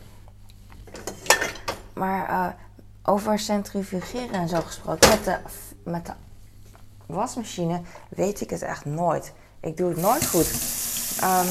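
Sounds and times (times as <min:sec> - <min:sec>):
dishes and cutlery clinking while unloading a dishwasher: 0:01.0 - 0:01.8
speech: 0:02.0 - 0:06.2, 0:07.1 - 0:11.5.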